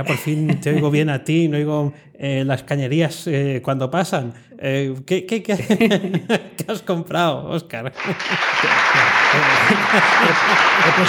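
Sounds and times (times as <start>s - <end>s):
laughter: 0.0s - 1.1s, 5.6s - 6.6s, 8.0s - 11.0s
speech: 0.0s - 11.0s
applause sound effect: 8.0s - 11.0s.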